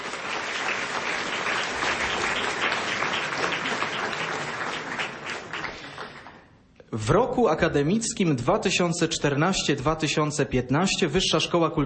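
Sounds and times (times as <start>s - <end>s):
audience applause: 0.0s - 6.5s
speech: 6.9s - 11.8s.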